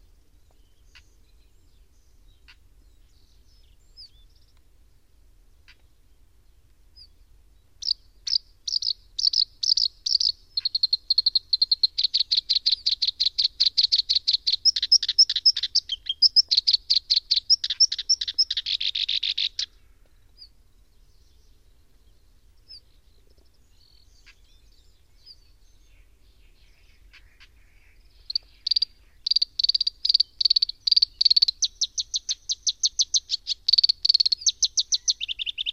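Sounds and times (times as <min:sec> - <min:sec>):
koyosikiri bird calling: 0:07.8 - 0:20.6, 0:22.7 - 0:35.7.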